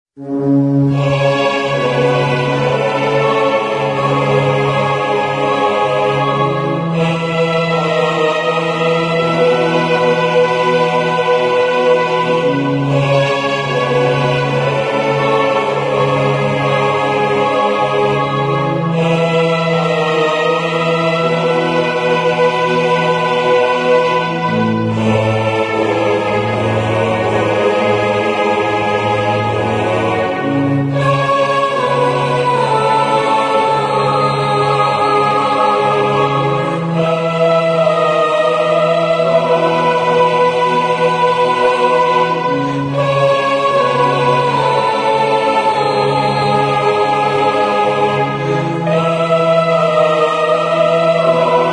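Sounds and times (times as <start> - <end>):
symphonic metal music: 0.4 - 51.7.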